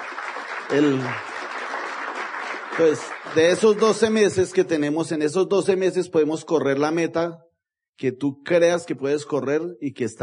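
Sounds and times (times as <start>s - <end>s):
loud applause from audience: 0.0s - 4.9s
speech: 0.7s - 1.3s, 2.8s - 10.2s.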